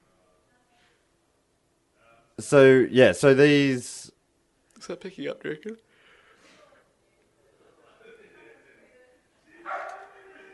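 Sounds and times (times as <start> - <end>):
speech: 2.4 - 4.1, 4.8 - 5.9
dog barking: 9.6 - 10.3.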